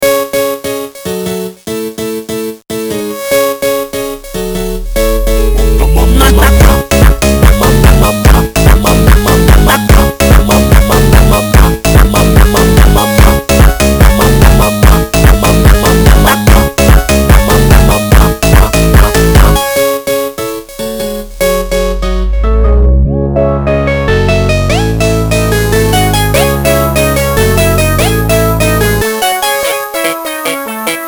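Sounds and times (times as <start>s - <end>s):
nightcore music: 2.7s - 31.0s.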